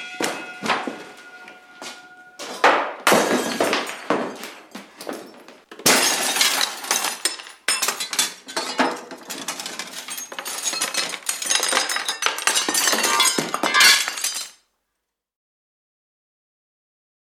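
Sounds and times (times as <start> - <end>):
objects smashing up a café interior: 2.4 - 14.6.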